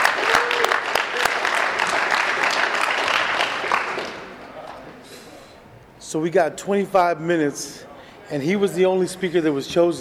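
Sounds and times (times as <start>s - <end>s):
audience applause: 0.0s - 4.4s
speech: 6.1s - 10.0s.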